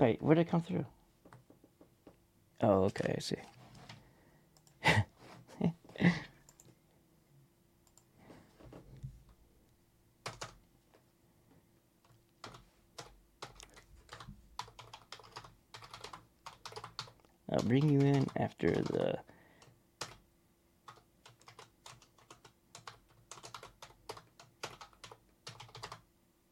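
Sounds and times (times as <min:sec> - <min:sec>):
speech: 0:00.0 - 0:01.0, 0:02.6 - 0:03.6, 0:05.6 - 0:06.3, 0:17.5 - 0:19.3
typing on a computer keyboard: 0:10.2 - 0:10.6, 0:12.4 - 0:20.2, 0:20.9 - 0:26.0.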